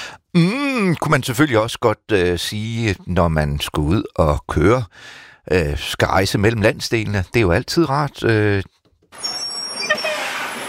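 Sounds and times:
speech: 0.4 - 9.4
bus pulling in with squealing brakes: 9.2 - 10.6.

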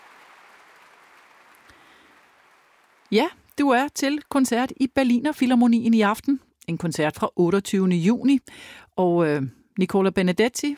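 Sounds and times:
large concert hall audience applause: 0.0 - 3.1
speech: 3.1 - 10.7.

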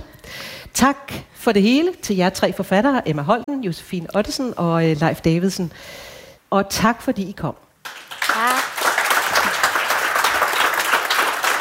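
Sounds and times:
speech: 0.8 - 7.6
audience applause: 7.9 - 11.5.

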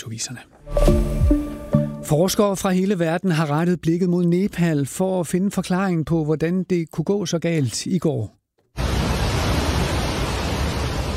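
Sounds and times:
speech: 0.0 - 1.4, 2.1 - 8.4
rushing brown floodwater sweeping buildings and cars: 8.8 - 11.1.

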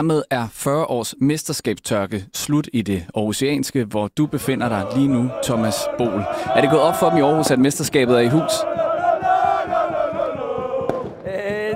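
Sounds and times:
speech: 0.0 - 8.8
crowd chanting and singing celebrating a championship: 4.3 - 11.7
thumping drumbeat: 4.5 - 11.7.

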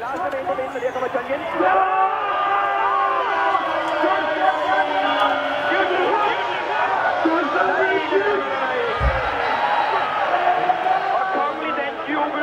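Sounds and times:
distant football crowd roaring and chanting: 0.0 - 12.4.

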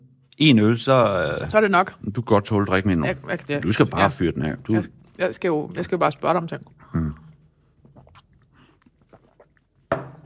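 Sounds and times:
speech: 0.4 - 7.2
person chewing grilled chicken: 6.6 - 9.9.

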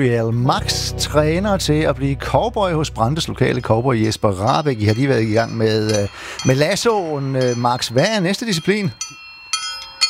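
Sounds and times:
speech: 0.0 - 9.2
two horseshoes clinking together during cowboy training: 3.4 - 10.0.

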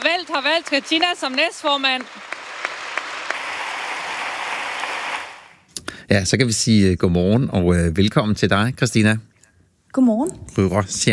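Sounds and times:
group applauding: 0.0 - 5.6
speech: 0.3 - 2.3, 6.1 - 9.3, 10.0 - 11.1.

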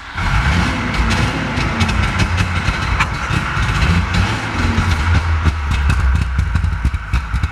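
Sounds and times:
1965 DKW F12 cabriolet engine running: 0.0 - 7.5.

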